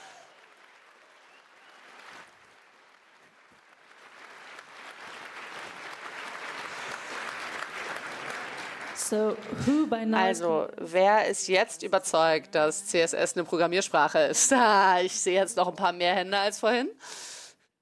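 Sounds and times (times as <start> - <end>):
audience applause: 0.0 - 10.1
speech: 9.1 - 17.3.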